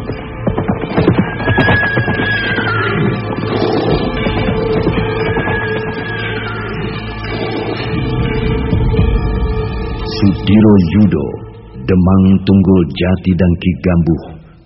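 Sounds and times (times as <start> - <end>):
horse hoofbeats: 0.0 - 8.9
rumbling and clattering noise: 0.0 - 14.6
speech: 10.5 - 14.3.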